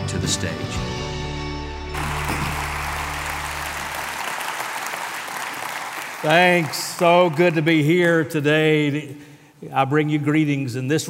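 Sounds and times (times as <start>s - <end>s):
speech: 0.3s - 1.1s, 6.2s - 11.0s
audience applause at a church service greeting a guest: 2.0s - 7.8s.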